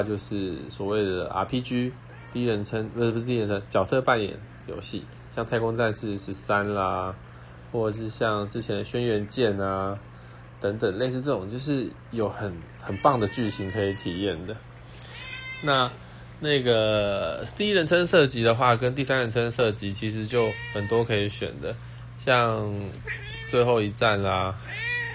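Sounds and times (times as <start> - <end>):
speech: 0.0 - 14.7, 15.6 - 24.8
cat meowing: 2.1 - 2.7, 12.8 - 16.0, 20.4 - 21.2, 22.9 - 23.7, 24.6 - 25.1.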